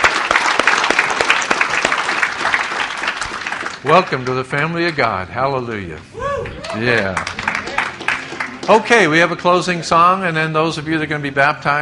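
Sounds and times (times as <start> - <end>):
church congregation applauding: 0.0 - 9.8
speech: 3.8 - 7.4, 8.7 - 11.8.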